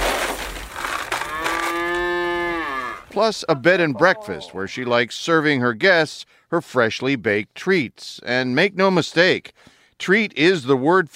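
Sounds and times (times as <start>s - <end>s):
cows mooing on a farm: 1.1s - 3.1s
speech: 3.2s - 11.1s.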